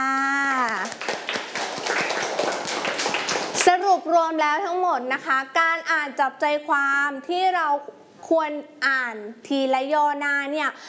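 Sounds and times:
children clapping for a classmate: 0.2s - 3.8s
speech: 4.0s - 10.8s.

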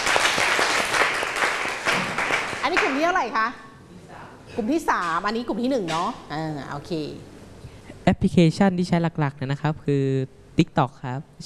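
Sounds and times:
classroom clapping: 0.0s - 3.0s
speech: 3.0s - 3.7s, 4.5s - 7.3s, 8.1s - 11.4s.

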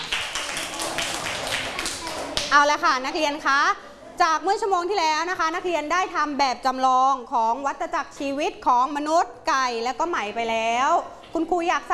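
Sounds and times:
classroom of children clapping for a classmate: 0.0s - 2.6s
speech: 2.5s - 11.9s.

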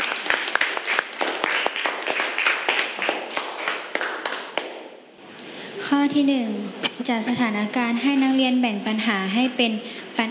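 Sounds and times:
classroom clapping to encourage a classmate: 0.0s - 5.0s
speech: 5.9s - 10.2s.

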